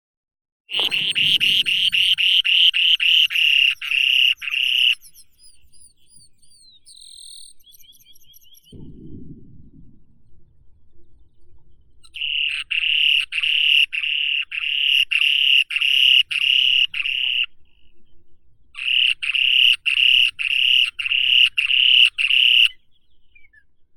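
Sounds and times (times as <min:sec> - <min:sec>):
spoon-billed sandpiper Eurynorhynchus pygmaeus calling: 0:00.7 - 0:05.9, 0:12.0 - 0:18.0, 0:18.8 - 0:23.6.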